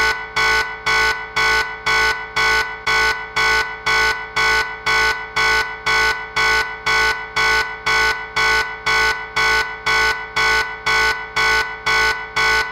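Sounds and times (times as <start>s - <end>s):
red alert warning alarm: 0.0s - 12.7s.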